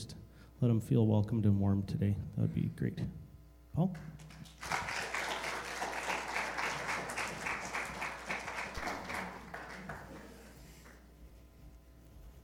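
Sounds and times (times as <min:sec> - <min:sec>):
speech: 0:00.6 - 0:03.2, 0:03.8 - 0:04.3
audience clapping: 0:04.0 - 0:11.1.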